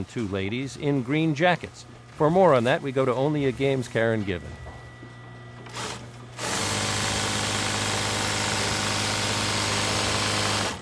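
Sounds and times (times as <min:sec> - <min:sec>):
speech: 0:00.0 - 0:04.6
sewing machines humming in sewing room at New England Flag and Banner: 0:05.6 - 0:10.8.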